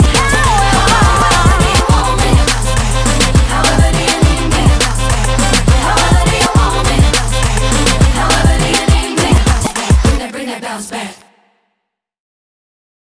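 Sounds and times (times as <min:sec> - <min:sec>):
cheerleader music mix: 0:00.0 - 0:10.2.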